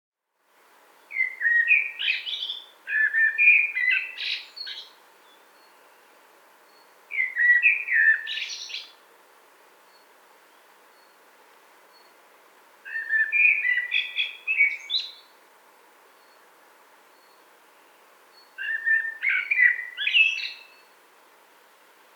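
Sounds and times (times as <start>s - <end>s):
Eurasian blackbird song phrase: 1.1s - 4.9s, 6.7s - 8.9s, 12.9s - 15.3s, 18.4s - 20.9s.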